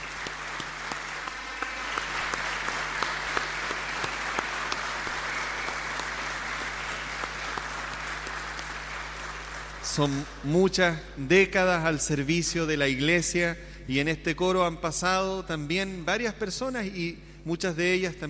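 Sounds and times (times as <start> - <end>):
applause: 0.0 - 10.5
speech: 10.0 - 18.2.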